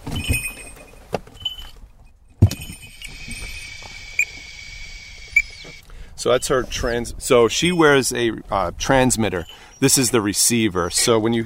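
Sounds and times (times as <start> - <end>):
dog's small metallic bells jingling as she runs: 0.1 - 1.8, 2.5 - 4.1, 9.1 - 10.5
speech: 6.2 - 11.4.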